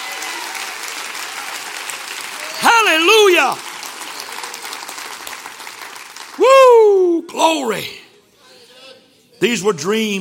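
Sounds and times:
audience clapping hands: 0:00.0 - 0:06.7
speech: 0:02.9 - 0:03.7, 0:07.3 - 0:08.0, 0:09.4 - 0:10.1.

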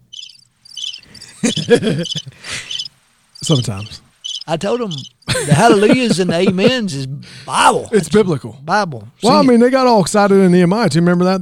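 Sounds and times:
cricket chirping: 0:00.0 - 0:05.4
laughter: 0:01.1 - 0:02.8, 0:04.9 - 0:07.2
speech: 0:01.4 - 0:02.7, 0:03.4 - 0:11.4.

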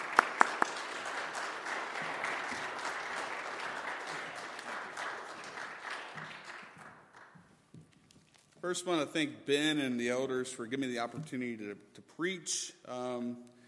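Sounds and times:
audience applause welcoming a guest preacher at a church service: 0:00.0 - 0:07.4
speech: 0:08.7 - 0:13.5.

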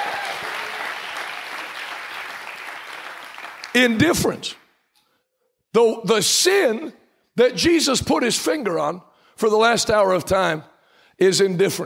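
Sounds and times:
audience clapping hands: 0:00.0 - 0:04.6
speech: 0:03.8 - 0:04.6, 0:05.8 - 0:11.8.

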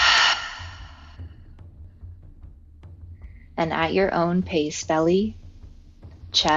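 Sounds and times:
deep exhale during a guided breathing exercise: 0:00.0 - 0:01.2
speech: 0:03.6 - 0:05.4, 0:06.3 - 0:06.5.

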